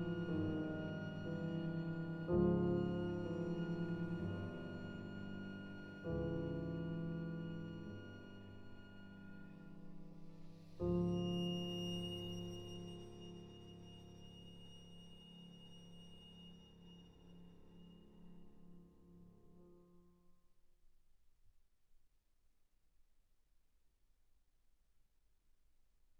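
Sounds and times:
violin and piano prelude played adagio: 0.0 - 19.9.

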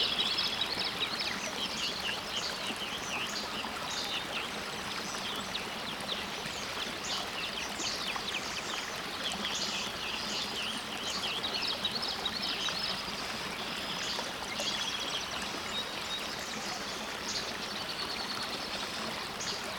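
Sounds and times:
morning songbirds singing by a brookside: 0.0 - 19.7.

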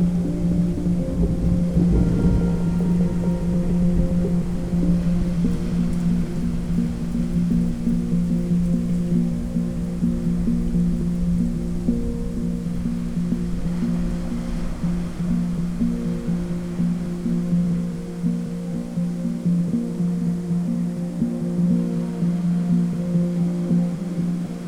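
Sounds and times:
gentle thunderstorm: 0.0 - 18.9
hang drum playing new age music: 0.0 - 21.8
ocean waves: 0.0 - 24.6.

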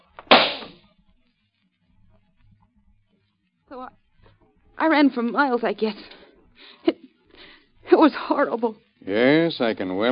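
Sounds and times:
gunshot in a radio drama: 0.2 - 0.8
speech: 3.7 - 4.0, 4.8 - 6.2, 8.0 - 10.1.

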